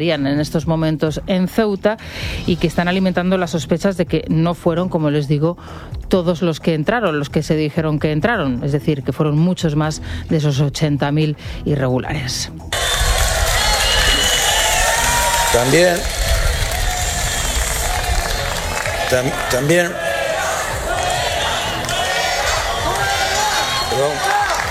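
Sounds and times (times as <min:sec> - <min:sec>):
speech: 0:00.0 - 0:12.8, 0:15.6 - 0:16.2, 0:19.1 - 0:20.0
crowd booing a minister: 0:12.8 - 0:24.6.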